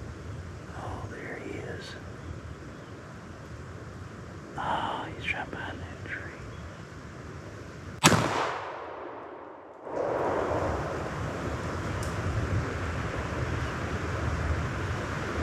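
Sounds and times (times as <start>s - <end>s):
rushing wind: 0.0s - 15.4s
long-range rifle gunshot while hunting: 8.0s - 10.0s.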